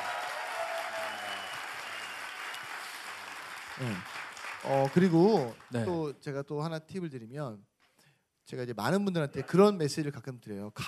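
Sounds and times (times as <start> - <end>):
audience applause: 0.0 - 6.0
speech: 3.8 - 7.7, 8.5 - 10.8.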